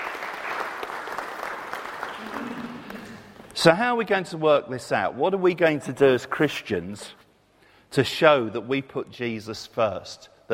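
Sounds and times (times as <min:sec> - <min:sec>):
audience applause: 0:00.0 - 0:03.4
speech: 0:03.6 - 0:07.2, 0:07.9 - 0:10.5.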